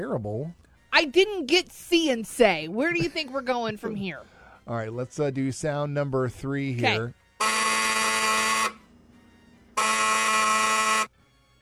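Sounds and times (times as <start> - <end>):
speech: 0.0 - 7.2
Operation board game buzzer: 7.4 - 8.9, 9.8 - 11.1.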